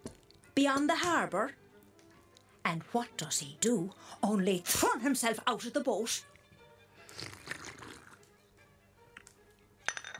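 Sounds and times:
speech: 0.6 - 1.6, 2.6 - 6.3
slurping tea: 7.0 - 8.3.

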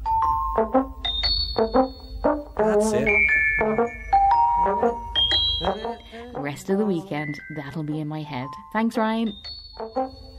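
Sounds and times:
fridge door chime: 0.0 - 2.0, 3.2 - 6.0, 9.3 - 10.3
speech: 0.6 - 1.0, 1.6 - 2.0, 2.6 - 4.0, 4.6 - 5.0, 5.6 - 10.3.

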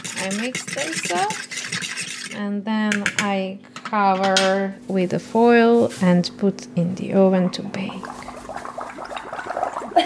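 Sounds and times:
speech: 0.2 - 8.2
blowing bubbles into juice: 7.8 - 10.0.

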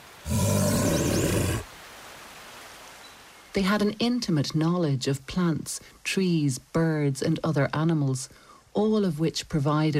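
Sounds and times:
brown bear roaring: 0.2 - 1.7
speech: 3.6 - 9.9.

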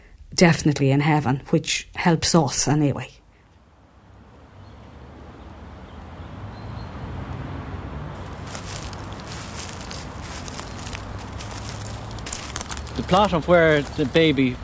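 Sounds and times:
speech: 0.3 - 3.2, 13.1 - 14.6
footsteps walking along a cemetery pathway: 8.2 - 14.4.

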